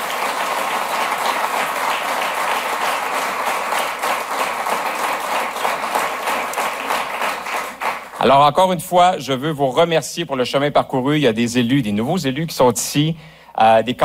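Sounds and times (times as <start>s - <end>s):
audience applause: 0.0s - 8.4s
speech: 8.2s - 14.0s.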